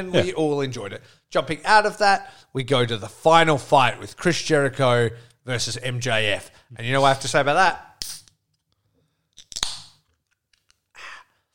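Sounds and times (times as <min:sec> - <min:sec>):
speech: 0:00.0 - 0:07.9
beer can cracked open into a microphone: 0:09.4 - 0:10.0.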